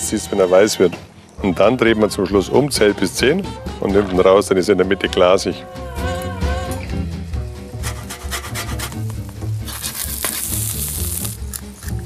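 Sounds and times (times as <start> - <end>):
speech: 0.1 - 6.1
fish frying skin side down in a pan with oil and butter: 7.9 - 12.0.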